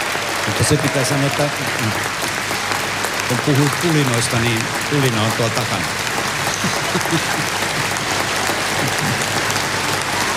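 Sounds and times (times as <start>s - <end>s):
standing ovation applause and cheering: 0.0s - 10.3s
speech: 0.5s - 2.2s, 3.3s - 7.6s
laughter: 3.4s - 9.8s.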